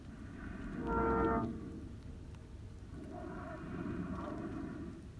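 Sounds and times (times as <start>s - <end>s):
humpback whale song unit moan at Kuiu: 0.2s - 2.1s, 2.9s - 5.1s.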